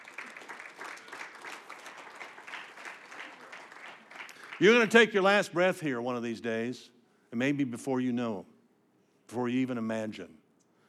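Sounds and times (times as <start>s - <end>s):
audience clapping: 0.0s - 5.2s
speech: 4.6s - 8.5s, 9.3s - 10.4s.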